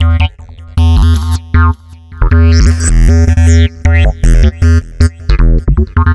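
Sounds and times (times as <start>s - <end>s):
synth bass: 0.0s - 6.1s.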